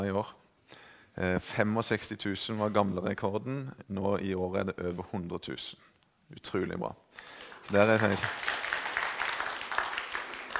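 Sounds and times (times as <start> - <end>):
speech: 0.0 - 8.5
people clapping: 7.2 - 10.5.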